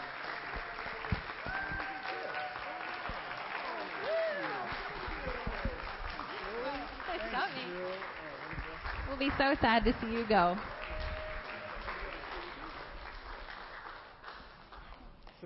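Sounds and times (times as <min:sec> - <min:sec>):
audience applause: 0:00.0 - 0:15.0
speech: 0:09.2 - 0:10.7.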